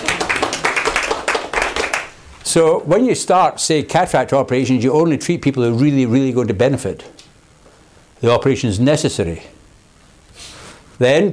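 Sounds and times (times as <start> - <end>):
crowd applause: 0.0 - 2.2
speech: 2.5 - 7.2, 8.2 - 9.6, 10.4 - 11.3.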